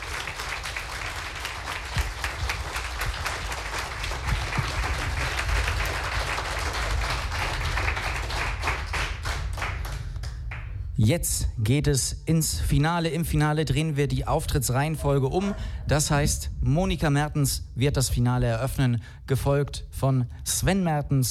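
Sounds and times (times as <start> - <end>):
audience applause for three contestants in a competition: 0.0 - 10.7
speech: 11.0 - 21.2.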